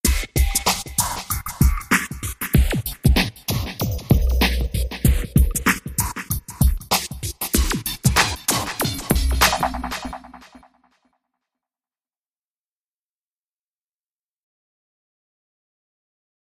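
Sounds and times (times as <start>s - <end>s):
drums: 0.0s - 11.0s.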